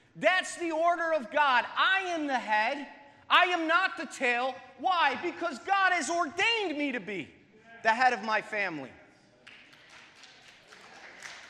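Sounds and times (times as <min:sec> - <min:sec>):
speech: 0:00.2 - 0:09.0
audience clapping: 0:09.4 - 0:11.4.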